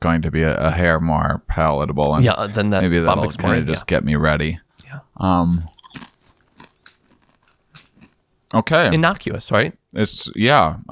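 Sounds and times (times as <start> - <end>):
speech: 0.0 - 6.1, 8.5 - 10.8
person crunching on cricket chips: 5.7 - 8.2.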